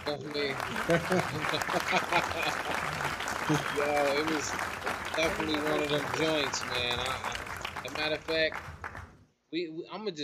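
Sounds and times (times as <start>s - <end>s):
laughter: 0.0s - 8.5s
applause sound effect: 0.0s - 9.2s
speech: 0.1s - 8.7s, 9.5s - 10.2s.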